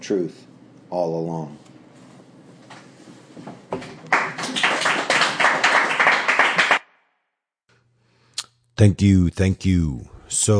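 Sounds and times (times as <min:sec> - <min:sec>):
speech: 0:00.0 - 0:01.7, 0:08.8 - 0:10.5
audience applause after a reading: 0:04.1 - 0:06.8.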